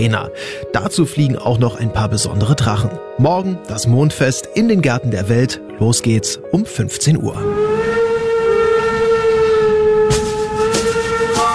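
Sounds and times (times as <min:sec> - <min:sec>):
speech: 0:00.0 - 0:07.9
steady train whistle tone: 0:07.4 - 0:11.5.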